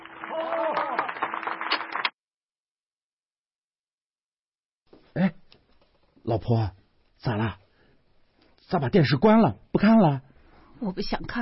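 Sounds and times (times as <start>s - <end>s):
audience applause: 0.0s - 2.2s
speech: 5.2s - 5.4s, 6.3s - 7.6s, 8.7s - 11.4s.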